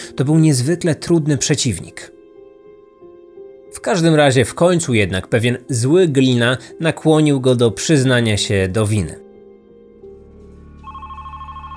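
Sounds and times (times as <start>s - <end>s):
speech: 0.2s - 2.2s, 3.8s - 9.2s
telephone ringing: 10.8s - 11.7s.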